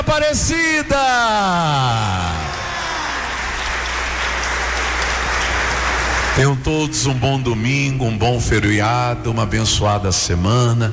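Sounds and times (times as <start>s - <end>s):
speech: 0.1s - 2.4s, 6.4s - 10.9s
audience applauding: 2.2s - 7.2s.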